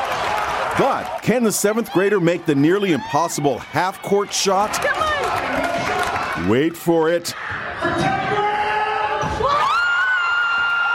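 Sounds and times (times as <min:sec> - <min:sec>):
crowd cheering at basketball game: 0:00.0 - 0:10.9
speech: 0:00.8 - 0:05.5, 0:06.4 - 0:08.3.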